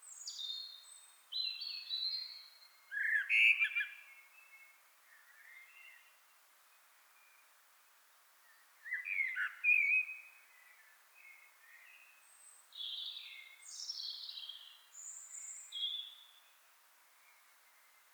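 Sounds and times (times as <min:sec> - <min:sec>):
common blackbird Turdus merula singing fluted warbles and squeaky notes: 0:00.1 - 0:04.0, 0:08.9 - 0:10.2, 0:12.8 - 0:16.4.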